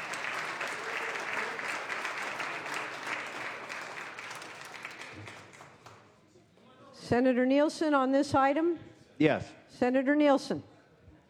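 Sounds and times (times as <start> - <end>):
round of applause: 0.0 - 6.2
speech: 7.1 - 10.7.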